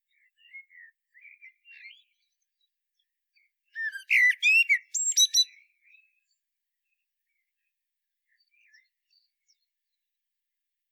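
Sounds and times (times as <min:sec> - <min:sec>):
Common blackbird singing: 0:03.8 - 0:05.6.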